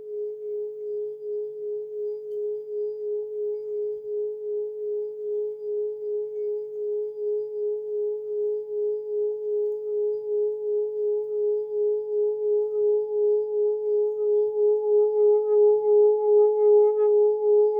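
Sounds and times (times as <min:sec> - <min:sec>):
140 mm seven-metal Tibetan singing bowl in G sharp: 0:00.0 - 0:17.7.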